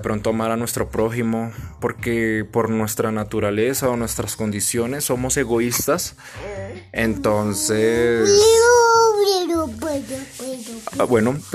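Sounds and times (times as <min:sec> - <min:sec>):
speech: 0:00.0 - 0:10.3, 0:10.9 - 0:11.5
young child babbling: 0:06.4 - 0:10.6.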